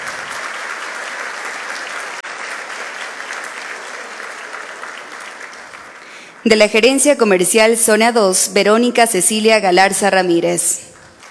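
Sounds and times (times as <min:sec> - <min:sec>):
applause: 0:00.0 - 0:07.3, 0:10.0 - 0:11.2
speech: 0:06.4 - 0:10.9.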